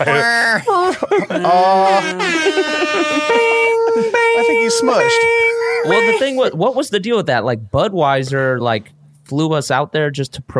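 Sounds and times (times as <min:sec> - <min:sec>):
laughter: 0:00.0 - 0:06.6
speech: 0:00.0 - 0:10.5
train horn blasts: 0:01.8 - 0:06.5.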